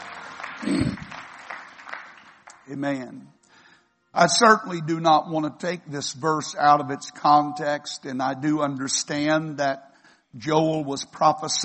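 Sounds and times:
audience clapping hands: 0:00.0 - 0:02.8
speech: 0:02.7 - 0:03.4, 0:04.2 - 0:11.6.

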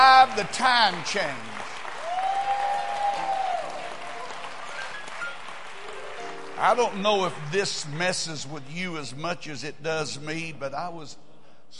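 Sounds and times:
audience applause: 0:00.0 - 0:08.0
speech: 0:00.4 - 0:01.6, 0:06.6 - 0:11.7.

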